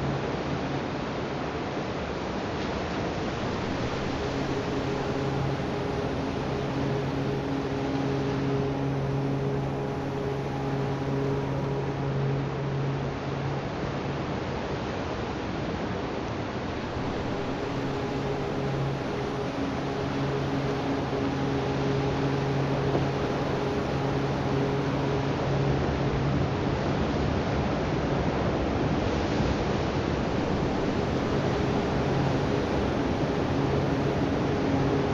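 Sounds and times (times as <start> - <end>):
beach ambience at Linda Mar Beach: 0.0 - 35.1
om chanting: 3.4 - 14.2, 16.7 - 26.9, 30.2 - 35.1.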